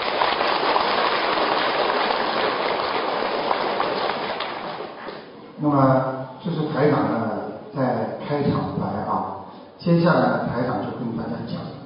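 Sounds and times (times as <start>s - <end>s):
crowd applauding: 0.0s - 5.3s
speech: 5.6s - 8.7s, 9.8s - 11.6s.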